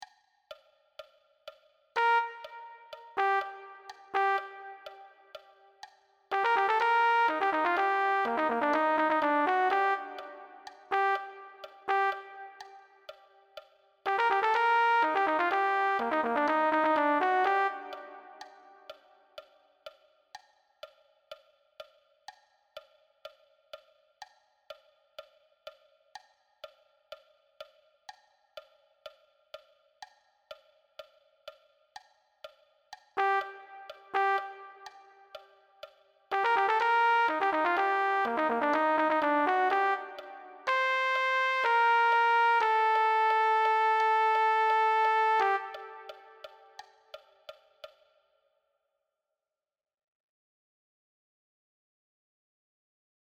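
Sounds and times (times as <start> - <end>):
trumpet: 2.0 - 5.6, 6.3 - 13.3, 14.1 - 19.0, 33.2 - 35.6, 36.3 - 46.8.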